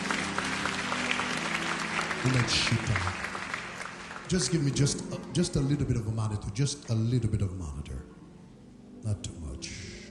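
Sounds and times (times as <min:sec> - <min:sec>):
congregation applause during a church service: 0:00.0 - 0:05.5
speech: 0:02.2 - 0:03.2, 0:04.3 - 0:08.1, 0:09.0 - 0:09.3.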